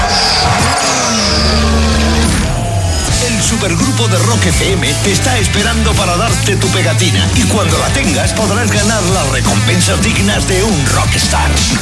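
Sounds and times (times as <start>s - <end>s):
car engine with start-stop system starting and revving: 0.0s - 11.8s
faint high whine of car tires: 0.0s - 11.8s
speech: 3.6s - 11.8s.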